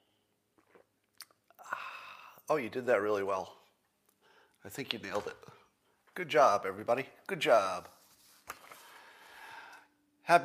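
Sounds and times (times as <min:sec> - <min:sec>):
person sipping a drink: 0:00.2 - 0:02.5
speech: 0:02.5 - 0:03.6, 0:04.6 - 0:05.6, 0:06.2 - 0:08.0, 0:10.3 - 0:10.4.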